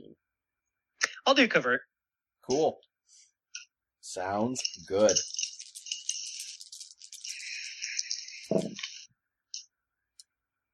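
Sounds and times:
speech: 1.3s - 1.9s, 2.5s - 3.2s, 4.1s - 5.4s
dice rattling and landing: 4.5s - 9.1s.

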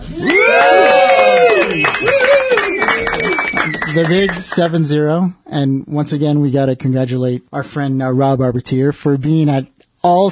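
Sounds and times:
high whistle: 0.1s - 4.5s
crowd clapping: 0.1s - 4.9s
speech: 0.2s - 0.6s, 4.0s - 10.2s.

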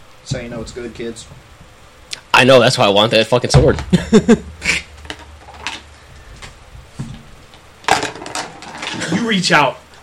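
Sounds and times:
speech: 0.3s - 1.6s, 2.4s - 4.8s, 9.3s - 9.8s
dice tipped out of a dice tray: 7.9s - 9.0s.

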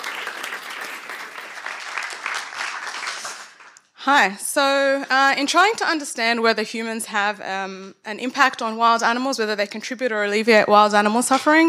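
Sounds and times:
audience applause: 0.0s - 3.8s
speech: 4.0s - 11.6s.

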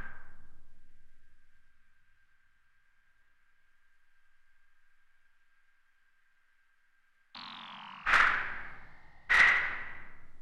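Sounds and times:
screechy synth: 7.4s - 9.8s.

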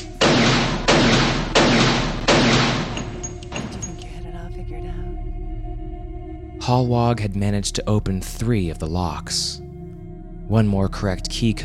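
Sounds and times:
gunshot: 0.2s - 3.7s
speech: 6.7s - 9.6s, 10.5s - 11.6s.

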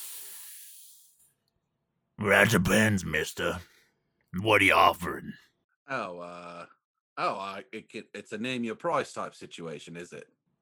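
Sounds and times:
breathy exhale of cigar smoke: 0.0s - 1.0s
speech: 2.2s - 3.7s, 4.3s - 10.4s.

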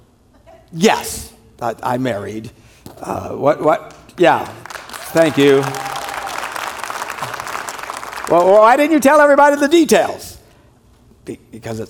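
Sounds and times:
speech: 0.7s - 5.9s, 8.3s - 10.3s, 11.2s - 11.8s
audience clapping: 3.9s - 9.4s.

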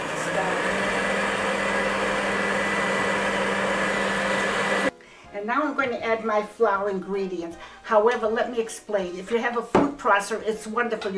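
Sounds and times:
electric stand mixer creaming sugar shortening and eggs at medium-high speed: 0.0s - 4.9s
speech: 5.4s - 11.1s.

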